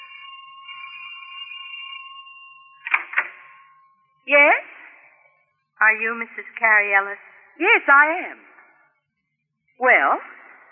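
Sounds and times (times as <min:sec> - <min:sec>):
insistent doorbell ringing: 0:00.0 - 0:04.3
speech: 0:04.2 - 0:04.7, 0:05.9 - 0:08.5, 0:09.8 - 0:10.4.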